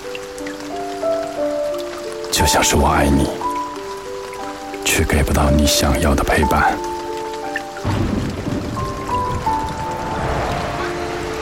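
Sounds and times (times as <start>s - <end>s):
rain falling: 0.0s - 11.4s
speech: 2.4s - 3.5s, 4.9s - 7.0s.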